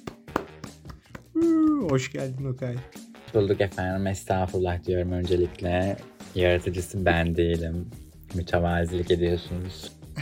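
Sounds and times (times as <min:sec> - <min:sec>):
sharp hand claps: 0:00.0 - 0:02.0
speech: 0:01.4 - 0:10.0.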